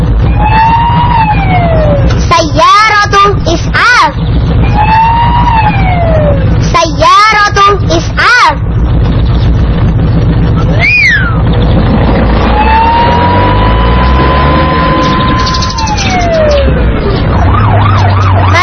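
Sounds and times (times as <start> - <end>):
patrolling police car siren wailing: 0.0 - 2.1, 4.5 - 6.6, 10.6 - 18.6
loud traffic rumble: 0.0 - 18.6.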